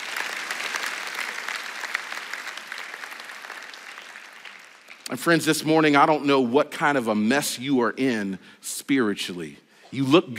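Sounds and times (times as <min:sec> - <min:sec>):
audience applauding: 0:00.0 - 0:05.2
speech: 0:05.1 - 0:10.3.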